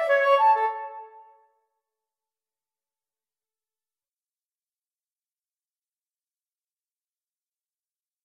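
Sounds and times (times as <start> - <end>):
pastorale for solo flute: 0.0 - 1.5.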